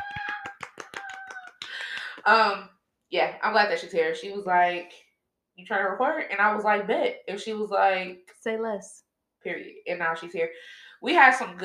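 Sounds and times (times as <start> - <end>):
inserted clapping sound effect: 0.0 - 2.3
speech: 2.2 - 5.0, 5.6 - 11.6.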